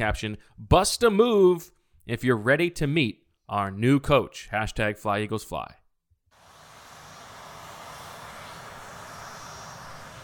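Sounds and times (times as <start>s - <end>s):
speech: 0.0s - 5.8s
aircraft engine running on an airport runway: 6.4s - 10.2s.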